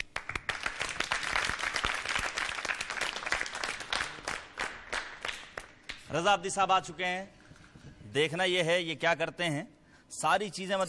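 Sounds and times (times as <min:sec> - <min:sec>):
audience applause: 0:00.0 - 0:05.5
speech: 0:06.1 - 0:07.4, 0:08.1 - 0:10.8.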